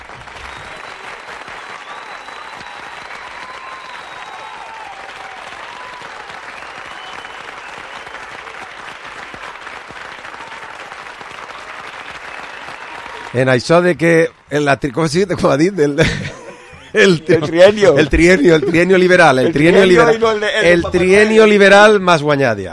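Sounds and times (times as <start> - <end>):
applause: 0.0 - 14.5
speech: 13.4 - 22.7
laughter: 15.8 - 20.9.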